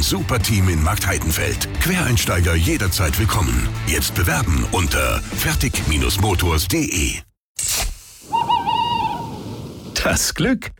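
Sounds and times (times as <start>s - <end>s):
speech: 0.0s - 7.8s, 10.0s - 10.7s
short burst of noise: 7.6s - 8.6s
owl hooting: 8.2s - 9.6s.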